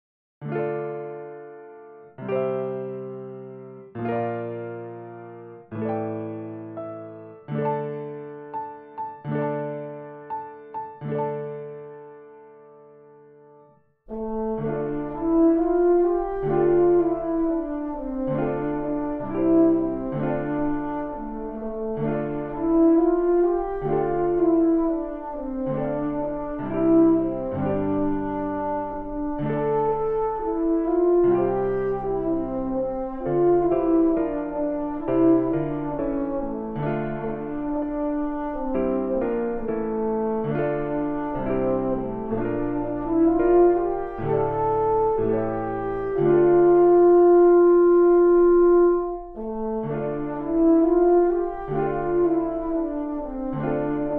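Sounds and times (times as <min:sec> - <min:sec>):
piano: 0:00.4 - 0:54.1
French horn playing a carol: 0:14.1 - 0:54.1.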